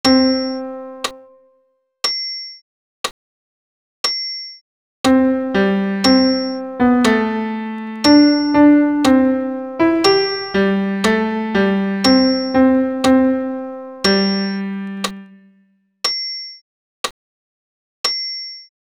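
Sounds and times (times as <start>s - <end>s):
solo piano piece: 0.0s - 1.3s, 5.1s - 15.5s.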